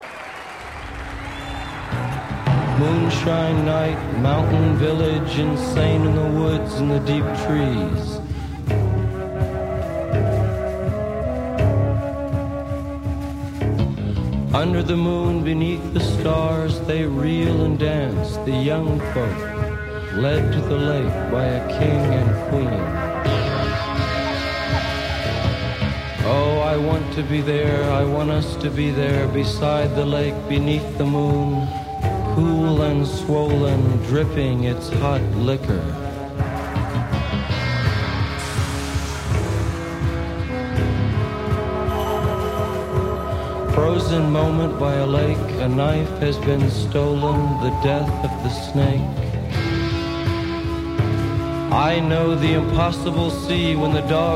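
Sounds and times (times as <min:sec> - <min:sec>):
chanting: 0:00.0 - 0:13.4, 0:14.5 - 0:54.3.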